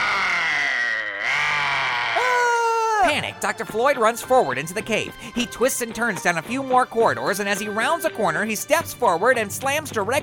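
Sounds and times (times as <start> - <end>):
menacing robotic monster roar: 0.0 - 2.2
speech: 3.1 - 10.2.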